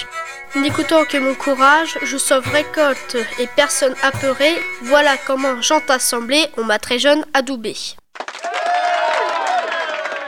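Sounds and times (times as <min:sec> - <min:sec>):
speech: 0:00.5 - 0:08.0
crowd at a medieval feast applauding: 0:08.1 - 0:10.2.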